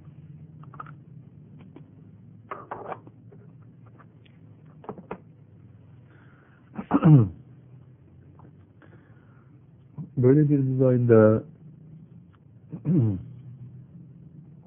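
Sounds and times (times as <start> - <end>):
low hum: 0.0 - 14.6
throat clearing: 6.7 - 7.4, 12.7 - 13.4
speech: 7.0 - 7.4, 10.3 - 11.5, 12.9 - 13.3.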